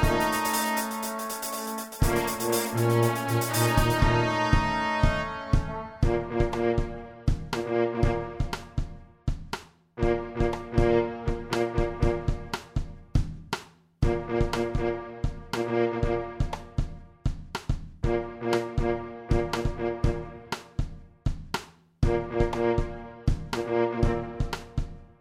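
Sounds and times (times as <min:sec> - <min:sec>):
trombone: 0:00.0 - 0:08.8, 0:10.0 - 0:12.5, 0:14.0 - 0:16.5, 0:18.0 - 0:20.5
tuba: 0:00.0 - 0:08.9, 0:10.0 - 0:13.0, 0:14.0 - 0:16.9, 0:18.0 - 0:20.8, 0:22.0 - 0:24.9
trumpet: 0:00.0 - 0:09.0, 0:10.0 - 0:12.9, 0:14.0 - 0:16.9, 0:18.0 - 0:20.8, 0:22.0 - 0:25.0
drum kit: 0:00.0 - 0:25.2.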